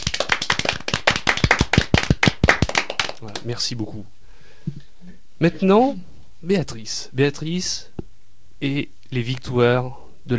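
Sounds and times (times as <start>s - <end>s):
studio audience applauding: 0.0s - 3.5s
speech: 3.2s - 8.0s, 8.6s - 10.3s.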